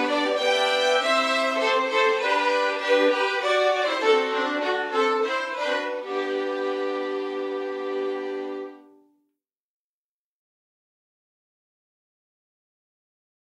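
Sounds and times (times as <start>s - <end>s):
polska dance tune: 0.0s - 8.7s.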